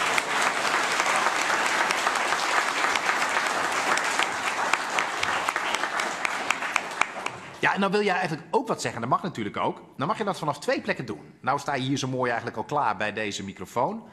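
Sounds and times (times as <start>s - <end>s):
thunderous applause from audience: 0.0s - 7.8s
speech: 7.6s - 14.1s.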